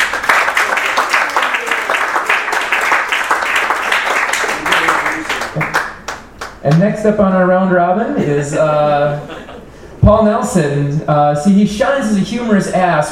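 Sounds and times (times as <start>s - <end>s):
audience round of applause: 0.0s - 6.6s
speech: 6.7s - 9.3s, 10.1s - 13.1s
laughter: 8.0s - 10.0s.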